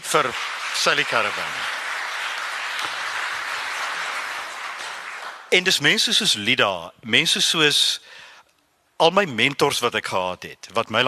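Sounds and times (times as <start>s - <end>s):
audience applause: 0.0s - 5.7s
speech: 0.1s - 1.8s, 5.5s - 8.2s, 9.0s - 11.0s.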